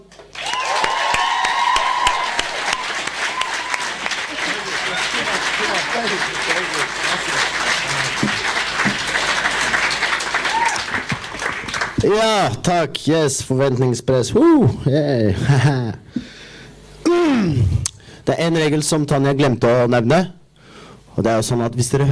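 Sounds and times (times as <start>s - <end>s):
audience applause: 0.0s - 12.1s
people cheering: 0.2s - 12.1s
laughter: 3.7s - 10.4s, 15.3s - 16.0s
speech: 12.0s - 16.0s, 18.3s - 20.4s, 21.2s - 22.1s.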